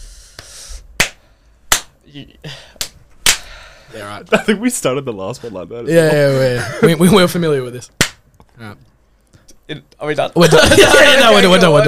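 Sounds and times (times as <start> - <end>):
hand claps to sync audio: 0.4 - 2.0, 2.8 - 3.5, 8.0 - 8.2
speech: 2.1 - 2.9, 3.9 - 8.0, 9.7 - 11.8
laughter: 10.4 - 11.8.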